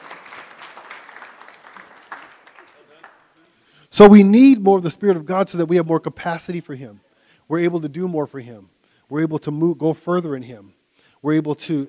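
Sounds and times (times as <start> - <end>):
audience applause: 0.0 - 3.4
speech: 4.0 - 11.8.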